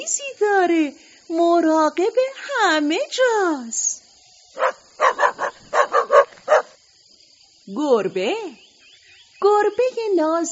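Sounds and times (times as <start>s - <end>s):
speech: 0.1s - 3.9s, 4.6s - 5.2s, 7.7s - 8.6s, 9.4s - 10.5s
dog barking: 4.6s - 6.8s.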